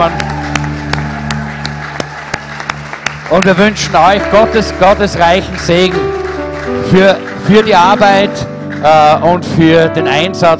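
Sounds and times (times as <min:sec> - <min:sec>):
speech: 0:00.0 - 0:00.3, 0:03.3 - 0:10.5
guests' scattered hand claps: 0:00.0 - 0:09.4.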